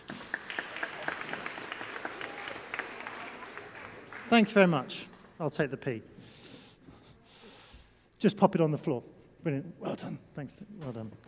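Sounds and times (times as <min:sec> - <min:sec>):
audience applause: 0:00.0 - 0:05.4
speech: 0:04.3 - 0:06.1, 0:08.2 - 0:11.2.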